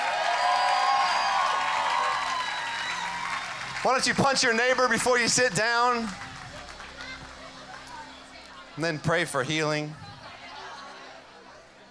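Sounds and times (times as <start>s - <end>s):
audience clapping: 0.0s - 8.6s
speech: 3.8s - 6.3s, 8.8s - 10.0s.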